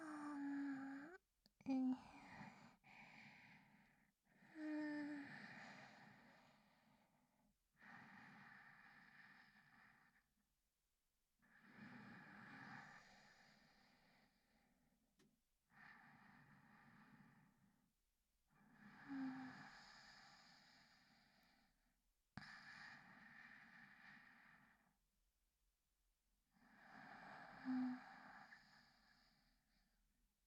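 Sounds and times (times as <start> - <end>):
sleep breathing recorded with binaural microphone: 0.0 - 7.2, 7.8 - 10.3, 11.5 - 14.8, 15.7 - 17.7, 18.6 - 21.8, 22.4 - 25.0, 26.6 - 30.0.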